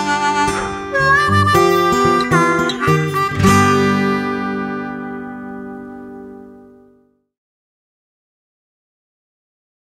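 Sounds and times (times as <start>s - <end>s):
blues music: 0.0s - 7.0s.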